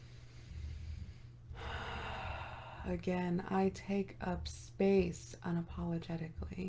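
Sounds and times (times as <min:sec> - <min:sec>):
breathing during breathwork meditation: 0:00.0 - 0:02.9
low steady hum: 0:00.0 - 0:06.6
speech: 0:02.8 - 0:06.6.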